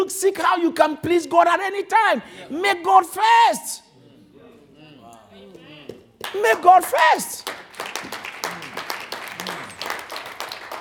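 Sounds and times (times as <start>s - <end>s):
speech: 0.0s - 3.9s, 6.3s - 7.6s
crowd clapping: 6.2s - 10.7s.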